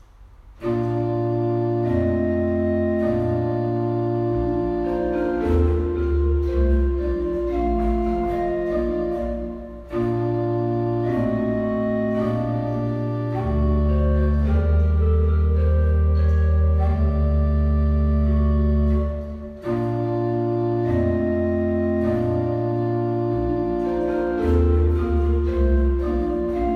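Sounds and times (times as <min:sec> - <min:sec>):
larghetto piece: 0:00.0 - 0:26.7.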